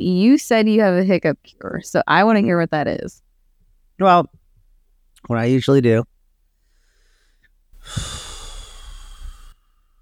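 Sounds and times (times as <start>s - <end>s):
speech: 0.0s - 3.3s, 4.0s - 4.4s, 5.2s - 6.1s, 7.8s - 8.2s
long deep breaths: 6.6s - 9.9s.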